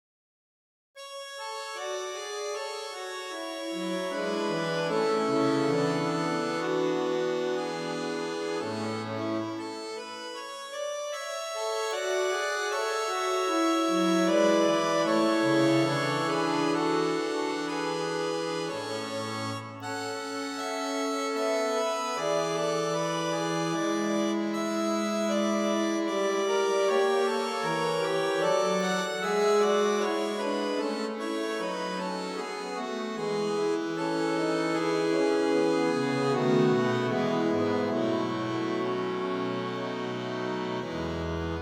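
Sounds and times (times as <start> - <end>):
harmonium playing an allegretto moderato piece: 1.0 - 41.6.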